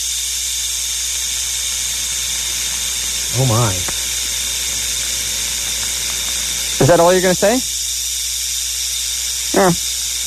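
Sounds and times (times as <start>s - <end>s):
rattlesnake rattling heard over the phone: 0.0s - 10.2s
low hum: 1.6s - 7.7s
speech: 3.4s - 3.9s, 6.8s - 7.7s, 9.5s - 9.9s.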